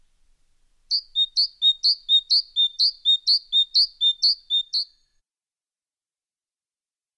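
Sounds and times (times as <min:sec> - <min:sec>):
bird whistled song: 0:00.9 - 0:05.1.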